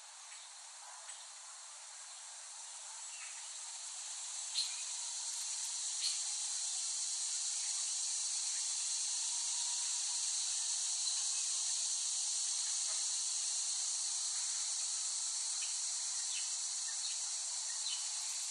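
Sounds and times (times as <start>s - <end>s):
cicada drone: 0.2s - 18.5s.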